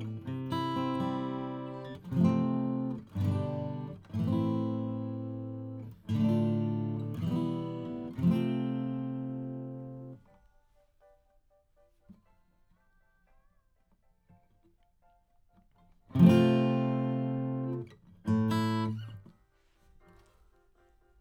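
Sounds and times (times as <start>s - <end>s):
acoustic guitar: 0.0s - 10.4s, 15.6s - 20.4s.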